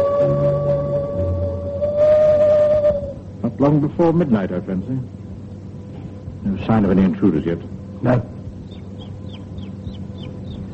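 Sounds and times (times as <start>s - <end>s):
low rumbling background: 0.0s - 10.7s
speech: 3.6s - 5.2s, 6.5s - 8.3s
young chick cheeping: 8.6s - 10.7s.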